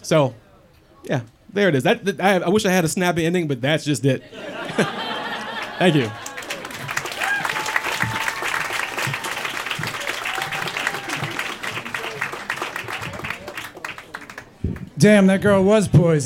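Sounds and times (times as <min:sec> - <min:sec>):
speech: 0:00.0 - 0:00.4, 0:01.0 - 0:05.1, 0:05.8 - 0:06.3, 0:15.0 - 0:16.2
laughter: 0:04.2 - 0:14.4
audience applause: 0:04.7 - 0:15.0
faint cheers and voices: 0:05.8 - 0:14.8.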